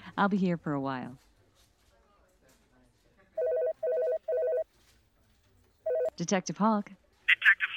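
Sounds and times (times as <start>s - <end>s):
speech: 0.2s - 1.3s, 6.2s - 7.6s
telephone ringing with a warbling tone: 3.4s - 4.7s, 5.9s - 6.2s.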